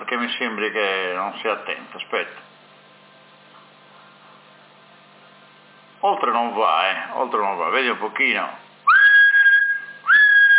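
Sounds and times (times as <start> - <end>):
speech: 0.1 - 2.5, 6.0 - 8.6
high-pitched whistles transmitted over FM radio: 8.9 - 10.5.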